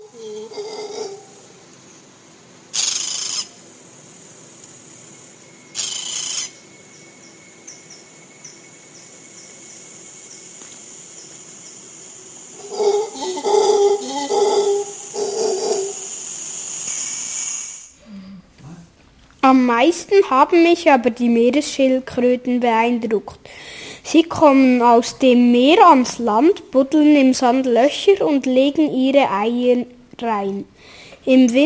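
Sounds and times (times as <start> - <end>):
howler monkeys howling: 0.0 - 1.7, 5.5 - 16.4
speech: 19.7 - 31.6.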